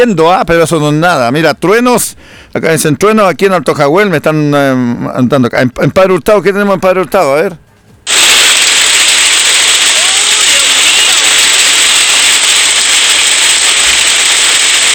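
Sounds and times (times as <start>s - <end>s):
speech: 0.0s - 8.2s
hail falling in Padre Hurtado: 8.1s - 14.9s.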